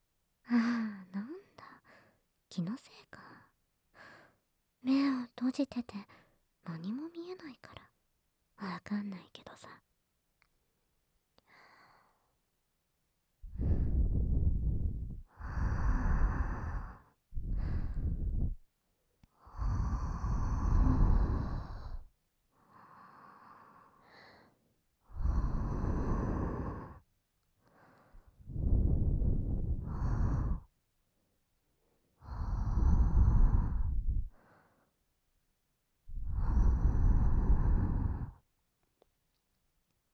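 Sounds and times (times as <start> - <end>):
speech: 2.6 - 3.3, 4.8 - 7.9, 8.6 - 9.9
heavy breathing: 13.5 - 18.6, 19.4 - 27.0, 27.7 - 30.7, 32.2 - 34.9, 36.2 - 38.4.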